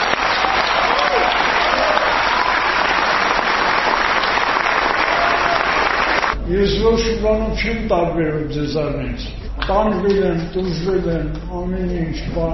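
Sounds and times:
audience applause after a film screening honouring Artavazd Peleshian: 0:00.0 - 0:06.4
speech: 0:06.8 - 0:12.5.

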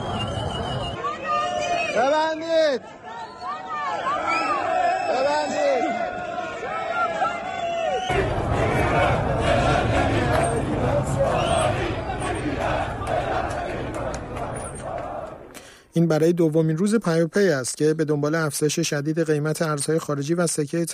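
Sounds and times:
crowd shouting: 0:00.0 - 0:15.5
speech: 0:02.2 - 0:03.0, 0:16.0 - 0:20.9
crowd chanting slogans: 0:02.8 - 0:15.6.

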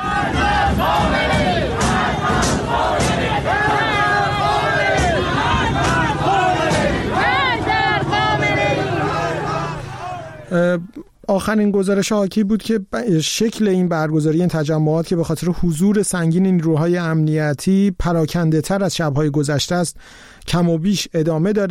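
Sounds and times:
protest crowd in Tehranpars, Tehran, shouting and chanting: 0:00.0 - 0:10.6
speech: 0:10.5 - 0:21.6.

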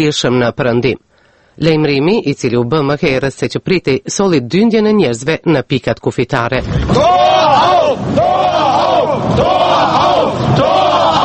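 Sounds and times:
speech: 0:00.0 - 0:08.3, 0:09.2 - 0:10.8
crowd of West Germans in Berlin chanting: 0:06.8 - 0:11.2.

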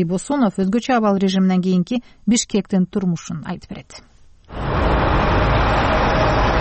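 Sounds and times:
speech: 0:00.0 - 0:04.7
street traffic at Lev Tolstoy and Nekrasov intersection in Bishkek: 0:04.5 - 0:06.5.

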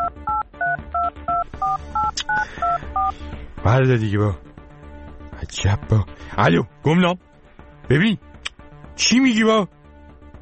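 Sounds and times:
telephone keypad tones as a number is dialed: 0:00.0 - 0:03.1
speech: 0:03.1 - 0:04.5, 0:05.4 - 0:07.3, 0:07.9 - 0:08.3, 0:09.0 - 0:09.8.

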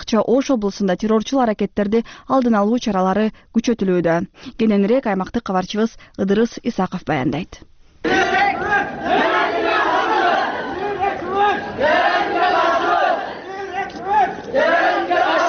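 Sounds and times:
speech: 0:00.1 - 0:09.4
schoolchildren chanting anti-terrorism slogans while marching through central Kara-Suu: 0:08.0 - 0:15.4.

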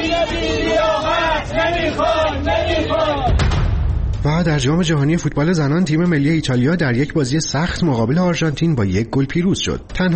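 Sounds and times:
Esteghlal football fans chanting protest slogans outside the club building: 0:00.0 - 0:03.5
speech: 0:04.2 - 0:10.1.

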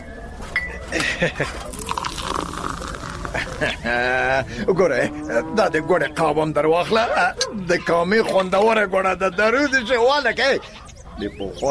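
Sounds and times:
speech: 0:01.2 - 0:01.7, 0:03.6 - 0:11.6
tea pouring into a cup: 0:01.6 - 0:04.2
cup clinking: 0:01.7 - 0:04.0.

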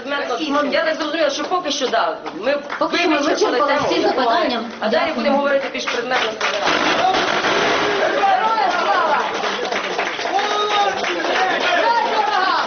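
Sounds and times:
speech: 0:00.4 - 0:07.2
applause at end of press conference: 0:05.5 - 0:12.6.

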